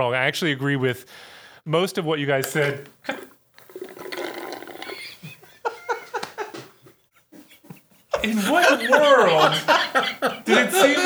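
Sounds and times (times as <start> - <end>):
speech: 0.0 - 3.2, 8.2 - 11.0
wet gulping: 2.6 - 8.7, 9.6 - 10.5
person slurping a drink into a microphone: 2.8 - 6.1
laughter: 4.2 - 11.0.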